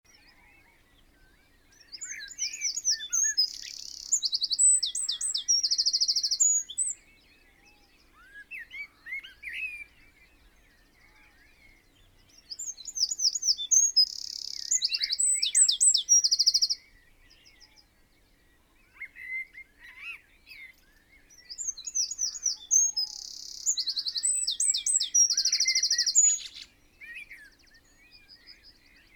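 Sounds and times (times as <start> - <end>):
bird calls: 0.1 - 29.1
Eurasian wren song: 1.8 - 7.0, 12.4 - 16.8, 21.4 - 26.7.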